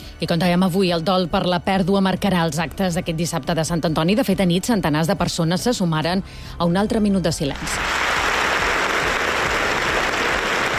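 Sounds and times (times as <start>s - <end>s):
speech: 0.2s - 8.2s
audience applause in an auditorium: 7.8s - 10.7s.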